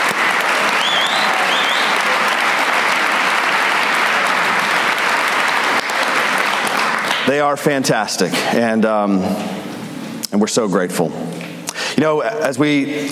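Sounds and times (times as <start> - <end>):
audience applause: 0.0 - 7.6
speech: 7.3 - 9.6, 10.3 - 13.1.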